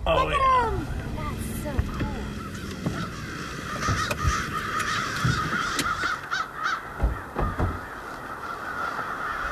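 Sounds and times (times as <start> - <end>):
speech: 0.1 - 0.9
large flock of birds calling: 0.3 - 9.5.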